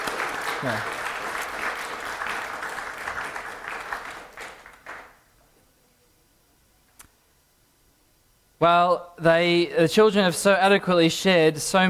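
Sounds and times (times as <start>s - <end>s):
audience applause: 0.0s - 5.2s
speech: 0.6s - 1.0s, 8.6s - 11.8s.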